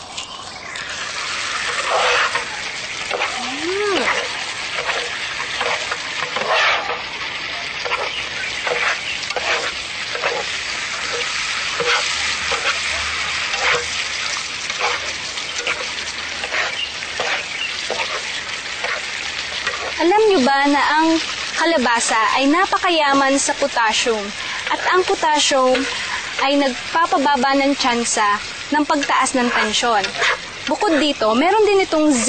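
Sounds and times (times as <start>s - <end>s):
food frying in a hot pan: 0.0s - 32.2s
utensil stirring food in a pan: 1.5s - 7.2s, 7.8s - 20.1s, 24.3s - 26.7s, 28.8s - 31.3s
speech: 22.0s - 32.2s.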